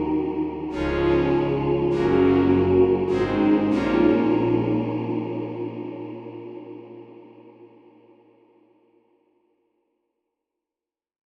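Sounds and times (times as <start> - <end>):
synthesizer chorale: 0.0 - 8.2.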